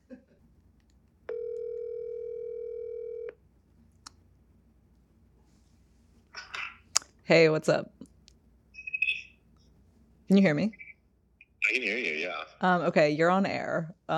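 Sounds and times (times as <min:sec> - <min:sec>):
telephone tone while placing a call: 0:01.3 - 0:03.4
speech: 0:07.3 - 0:07.9, 0:10.3 - 0:10.8, 0:11.8 - 0:14.1.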